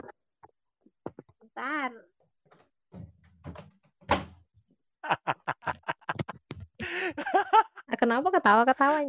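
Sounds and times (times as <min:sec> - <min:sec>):
speech: 0:01.6 - 0:02.1, 0:08.4 - 0:09.0
door slammed shut: 0:03.0 - 0:04.4
laughter: 0:05.0 - 0:07.9.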